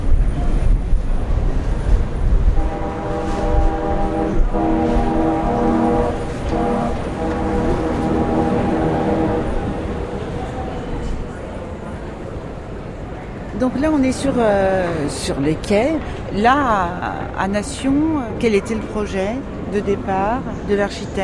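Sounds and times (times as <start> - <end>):
train wheels roaring: 0.0 - 13.4
strong rushing air drafting through long ventilated corridors: 0.0 - 13.5
RER commuter train rumbling through underground Nation station: 0.0 - 21.2
speech: 13.7 - 21.2.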